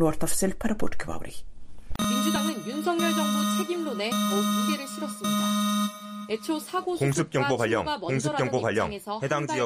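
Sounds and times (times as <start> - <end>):
speech: 0.0 - 1.5, 2.3 - 5.6, 6.3 - 9.6
emergency alarm on South Korean television warning to take shelter: 2.0 - 7.0.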